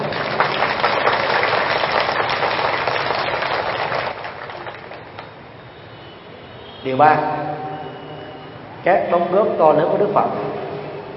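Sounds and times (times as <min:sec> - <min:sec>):
loud applause: 0:00.0 - 0:05.4
speech: 0:06.9 - 0:07.5, 0:08.8 - 0:10.6.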